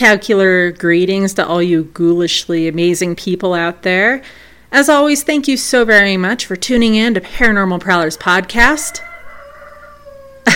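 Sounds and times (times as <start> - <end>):
speech: 0.0 - 9.1
rooster crowing: 8.1 - 10.5.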